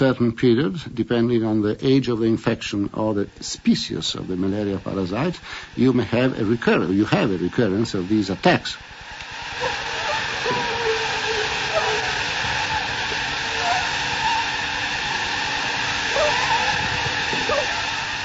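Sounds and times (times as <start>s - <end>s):
speech: 0.0s - 8.9s
malaria mosquitoes buzzing in a container: 9.5s - 18.2s.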